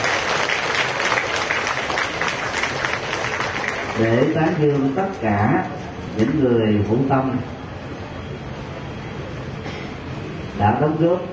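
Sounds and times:
Buddhist gathering applauding in the grounds of Giác Ngộ pagoda: 0:00.0 - 0:04.9
speech: 0:04.0 - 0:07.6, 0:10.6 - 0:11.3.

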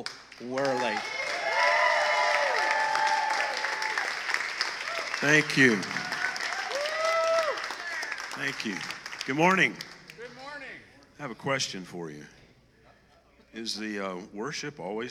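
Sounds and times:
speech: 0:00.0 - 0:01.2, 0:05.2 - 0:06.0, 0:08.4 - 0:09.9, 0:11.2 - 0:12.4, 0:13.5 - 0:15.0
audience round of applause: 0:00.0 - 0:10.6.

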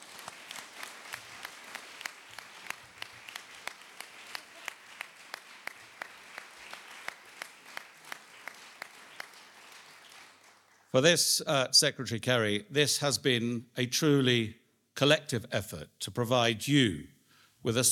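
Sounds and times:
audience applauding: 0:00.0 - 0:10.9
speech: 0:10.9 - 0:17.9.

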